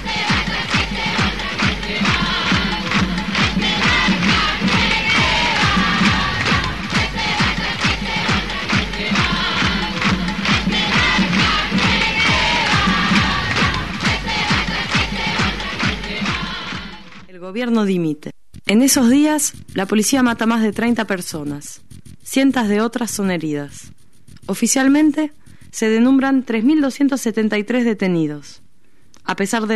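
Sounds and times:
large protest crowd chanting slogans in unison: 0.0 - 17.2
speech: 17.5 - 28.6, 29.2 - 29.7.

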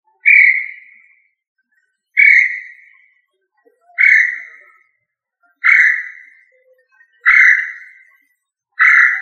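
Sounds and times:
quail of the family Tinamidae giving drawn-out whistles: 0.2 - 1.2, 2.2 - 2.9, 4.0 - 4.7, 5.6 - 6.4, 7.2 - 8.0, 8.8 - 9.2.

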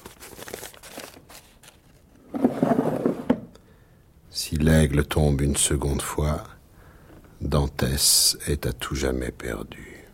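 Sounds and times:
paper crinkling: 0.0 - 2.2
wooden drawer sliding shut: 2.3 - 3.5
speech: 4.6 - 6.6, 7.4 - 10.0.

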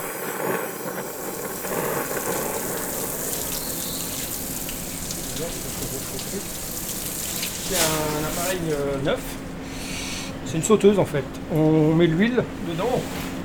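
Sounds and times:
rainwater recovery pump pushing water to toilet cisterns: 0.0 - 9.7
speech: 8.5 - 9.4, 10.5 - 13.4.

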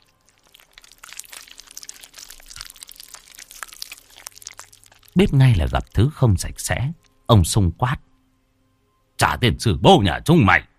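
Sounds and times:
crunchy chewing of raw fish: 0.0 - 6.0
speech: 5.2 - 8.1, 9.2 - 10.7.

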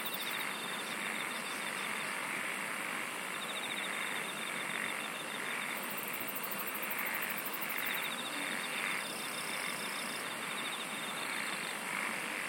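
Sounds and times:
constant hissing background: 0.0 - 12.4
insects singing a fine pulsed trill: 0.0 - 12.4.

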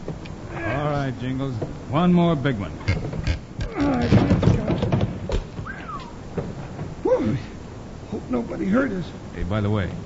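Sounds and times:
speech: 1.1 - 3.1, 3.8 - 4.4, 8.3 - 10.0
trap door in a loading platform being pried up: 2.9 - 5.7.

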